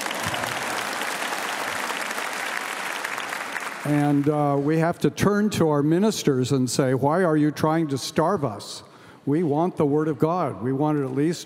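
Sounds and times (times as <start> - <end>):
audience applause: 0.0 - 4.3
speech: 3.8 - 11.4.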